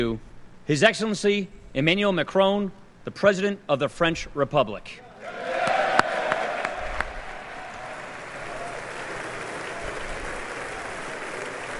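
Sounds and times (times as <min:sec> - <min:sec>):
speech: 0:00.0 - 0:05.4
large standing crowd clapping: 0:05.3 - 0:11.7.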